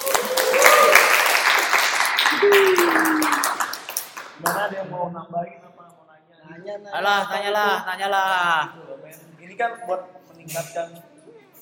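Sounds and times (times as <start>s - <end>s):
audience clapping: 0.0s - 4.7s
speech: 4.7s - 5.6s, 6.5s - 11.1s.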